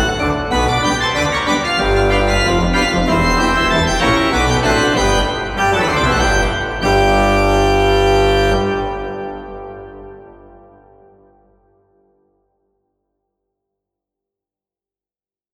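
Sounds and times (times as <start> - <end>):
organ playing ragtime: 0.0 - 10.3.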